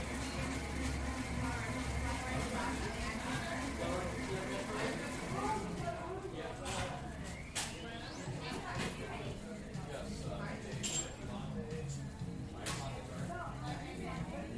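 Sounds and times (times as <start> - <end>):
coffee shop murmur of overlapping voices: 0.0 - 14.5
dishes and cutlery clinking: 10.7 - 11.3.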